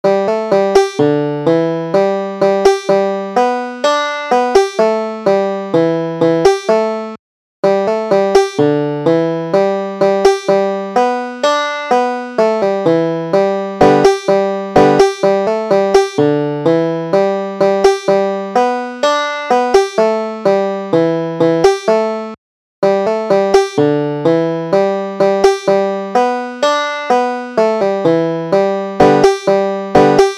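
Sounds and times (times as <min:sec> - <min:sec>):
banjo: 0:00.1 - 0:30.3.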